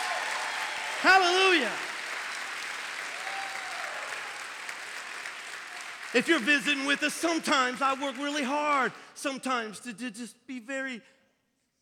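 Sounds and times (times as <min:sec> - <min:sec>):
audience clapping hands: 0:00.0 - 0:09.3
speech: 0:01.0 - 0:01.9, 0:06.1 - 0:11.2.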